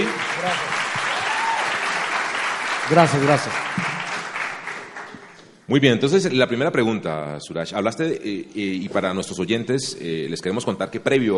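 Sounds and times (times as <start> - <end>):
audience applause: 0.0 - 5.4
speech: 2.9 - 3.9, 5.7 - 11.3.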